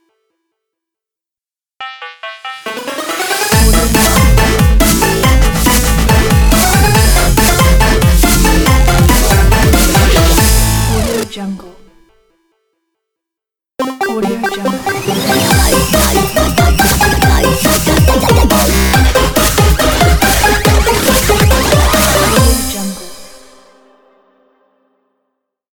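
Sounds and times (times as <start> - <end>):
8-bit dubstep logo intro: 2.1 - 11.3, 13.8 - 23.4.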